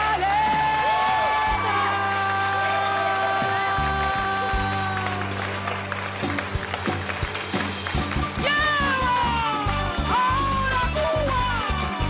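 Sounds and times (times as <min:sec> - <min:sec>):
audience applause: 0:00.0 - 0:12.0.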